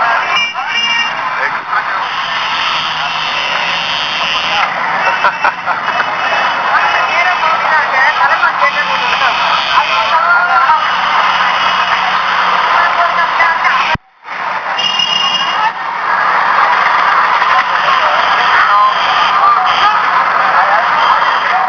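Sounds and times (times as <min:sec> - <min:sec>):
street ambience in Varanasi India from the back of a rickshaw: 0:00.0 - 0:21.6
laughter: 0:03.3 - 0:08.8.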